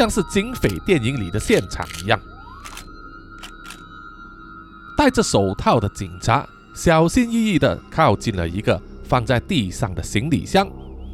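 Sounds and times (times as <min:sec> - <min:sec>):
speech: 0:00.0 - 0:02.4, 0:05.0 - 0:10.8
camera shutters clicking: 0:01.8 - 0:02.8, 0:03.4 - 0:03.8.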